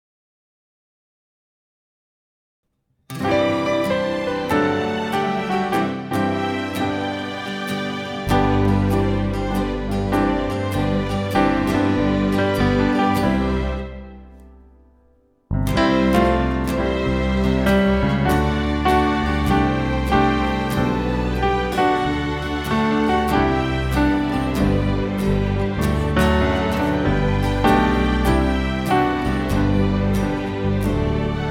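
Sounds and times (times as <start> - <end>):
backing track: 3.1 - 14.7, 15.5 - 31.4.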